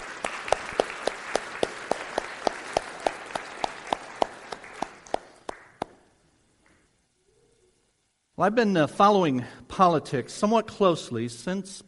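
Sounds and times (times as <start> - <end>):
audience applause: 0.0 - 6.0
speech: 8.4 - 11.8.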